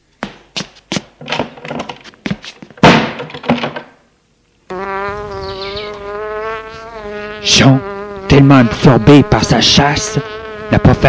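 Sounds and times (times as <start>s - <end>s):
door shutting: 2.8s - 4.0s
high droning buzz: 4.7s - 11.0s
speech: 7.6s - 11.0s.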